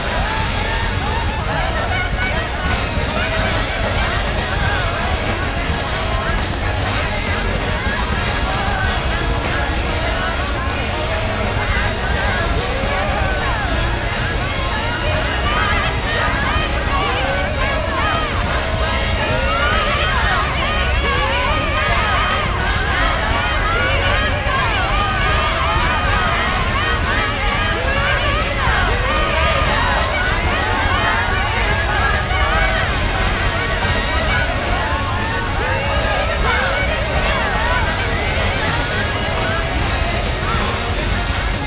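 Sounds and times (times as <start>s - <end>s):
laughter: 0.0s - 41.6s
singer with big band: 0.0s - 41.6s.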